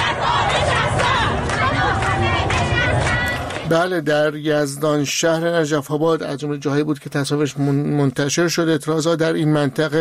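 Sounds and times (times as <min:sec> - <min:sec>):
large crowd of protesters chanting slogans: 0:00.0 - 0:03.7
speech: 0:03.7 - 0:09.9.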